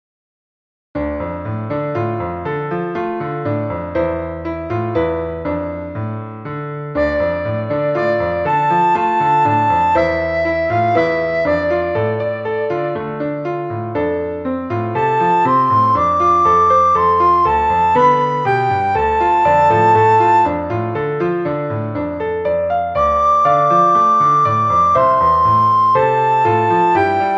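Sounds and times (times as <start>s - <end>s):
karaoke piano: 1.0s - 27.3s.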